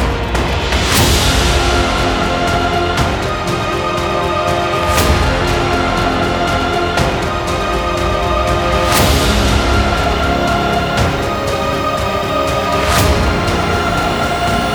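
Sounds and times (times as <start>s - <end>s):
heroic music: 0.0s - 14.7s.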